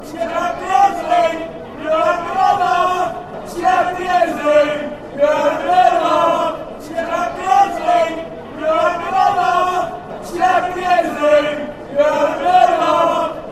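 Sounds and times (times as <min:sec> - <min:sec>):
crowd chanting: 0:00.0 - 0:13.5.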